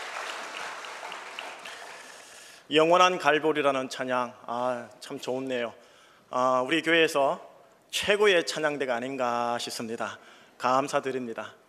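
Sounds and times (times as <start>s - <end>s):
church congregation clapping to give glory to God: 0.0s - 2.6s
speech: 2.7s - 11.6s.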